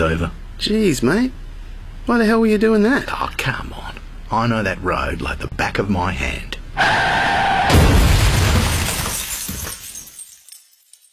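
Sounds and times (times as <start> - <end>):
speech: 0.0 - 1.4, 2.0 - 8.0
breaking glass sound effect: 7.7 - 11.1
tinkling glass shards: 8.7 - 11.1.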